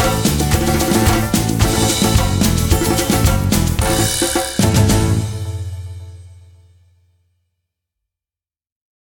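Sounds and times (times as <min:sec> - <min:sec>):
maracas shaking: 0:00.0 - 0:05.4.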